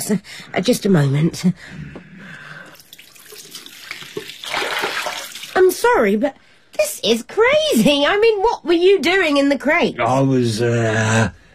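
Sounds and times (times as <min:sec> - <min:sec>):
speech: 0:00.1 - 0:02.0, 0:05.7 - 0:11.4
tap water splashing and gurgling into a glass: 0:02.8 - 0:05.6.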